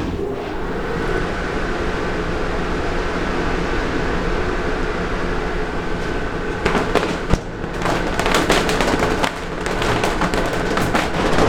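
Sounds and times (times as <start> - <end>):
mechanical rumble: 0.0 - 11.4
sanded felt hat bodies beaten to remove dust: 6.0 - 11.4.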